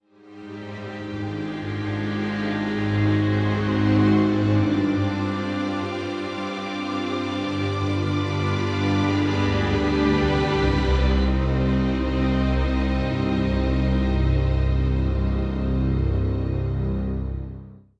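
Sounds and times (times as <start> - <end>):
strings: 0.1 - 17.6.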